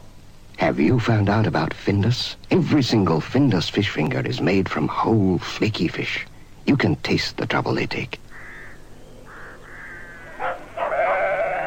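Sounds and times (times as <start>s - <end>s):
speech: 0.6s - 8.2s
lambs bleating: 9.4s - 11.6s.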